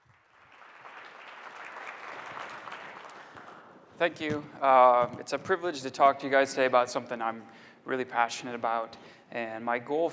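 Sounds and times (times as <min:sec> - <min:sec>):
audience applause: 0:00.0 - 0:03.9
speech: 0:04.0 - 0:10.1.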